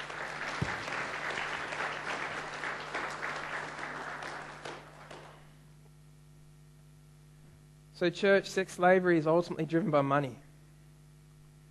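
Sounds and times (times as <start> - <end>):
audience applause: 0.0 - 5.5
speech: 8.0 - 10.4.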